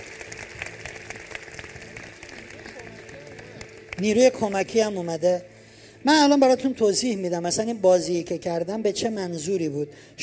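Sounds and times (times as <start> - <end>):
group applauding: 0.0 - 4.7
speech: 4.0 - 10.2.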